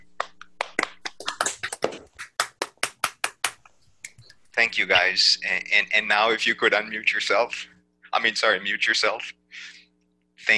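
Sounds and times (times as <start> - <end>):
applause from unmuted online audience: 0.2 - 3.6
speech: 4.6 - 9.7.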